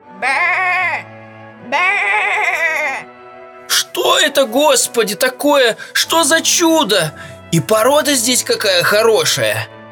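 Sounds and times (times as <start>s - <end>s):
speech: 0.2s - 0.5s, 1.7s - 2.4s, 4.0s - 9.8s
lamb bleating: 0.2s - 3.1s.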